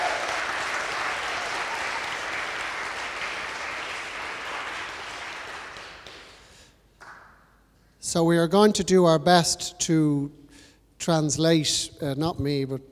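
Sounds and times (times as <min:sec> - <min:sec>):
audience applause: 0:00.0 - 0:06.4
speech: 0:08.1 - 0:10.4, 0:11.0 - 0:12.9.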